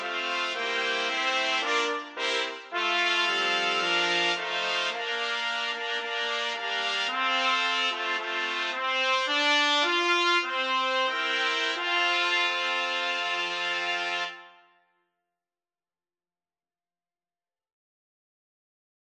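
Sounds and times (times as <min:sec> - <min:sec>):
trumpet ensemble: 0:00.0 - 0:14.8.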